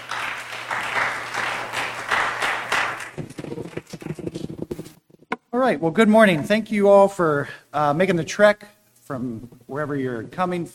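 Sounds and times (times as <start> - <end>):
audience applause welcoming a speaker in Melbourne, Florida: 0.0 - 4.5
speech: 5.6 - 10.7.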